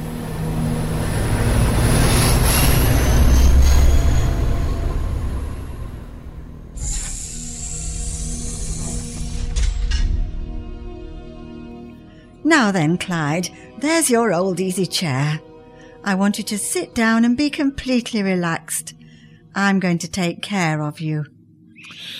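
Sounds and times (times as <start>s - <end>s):
shuttle car rolling along rails with droning rumble: 0.0s - 10.6s
shrill metallic wheel squeal of shuttle car: 2.0s - 5.5s, 6.8s - 10.0s
speech: 12.6s - 19.0s, 19.6s - 22.1s.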